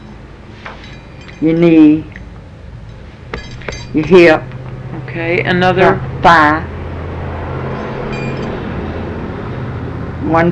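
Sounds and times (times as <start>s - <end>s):
speech: 1.4s - 2.2s, 3.9s - 4.5s, 5.2s - 6.7s, 10.2s - 10.5s
heavy truck rumbling past: 2.4s - 10.5s.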